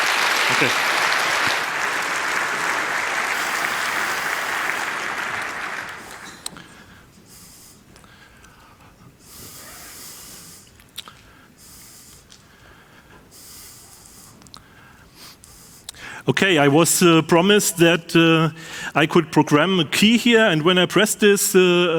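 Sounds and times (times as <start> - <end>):
audience applause: 0.0 - 6.6
speech: 0.6 - 1.0, 16.3 - 21.9.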